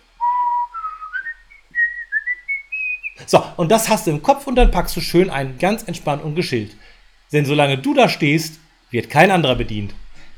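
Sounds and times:
person whistling a relaxed tune: 0.2s - 3.2s
speech: 3.3s - 10.0s.

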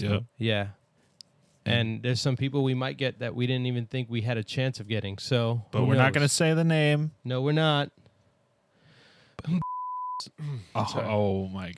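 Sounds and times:
speech: 0.0s - 0.8s, 1.6s - 8.0s, 9.4s - 11.7s
censor bleep: 9.6s - 10.3s
throaty cough: 10.4s - 11.1s.

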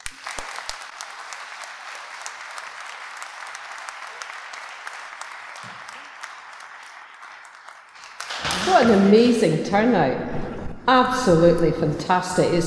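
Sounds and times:
audience applause: 0.0s - 9.3s
speech: 8.8s - 12.6s.

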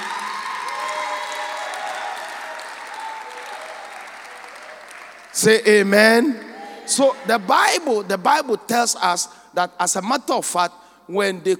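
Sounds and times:
audience clapping: 0.0s - 8.9s
speech: 5.4s - 11.5s.

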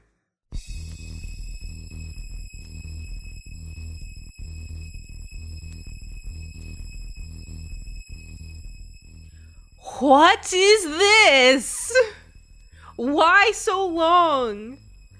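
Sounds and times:
pounding bass pulse: 0.6s - 9.9s, 12.1s - 13.0s, 14.2s - 15.1s
high-pitched whistle tone in techno track: 0.6s - 15.1s
speech: 10.0s - 12.2s, 13.0s - 14.8s.

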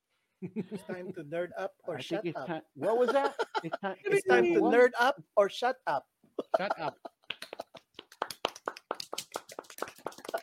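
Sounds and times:
laughter: 0.4s - 1.3s, 2.2s - 4.6s, 6.4s - 7.9s
speech: 0.4s - 7.1s
golf-style polite hand clapping: 7.2s - 10.4s.

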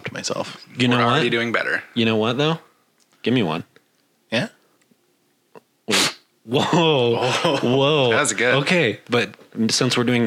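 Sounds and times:
speech: 0.2s - 3.7s, 4.3s - 4.6s, 5.9s - 10.2s
loud sharp nasal sniff: 5.9s - 6.3s.

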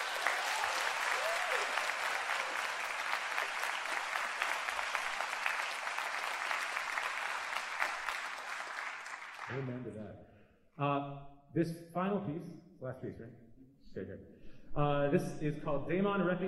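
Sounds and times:
audience applause: 0.0s - 9.8s
speech: 9.5s - 13.4s, 14.0s - 16.4s.

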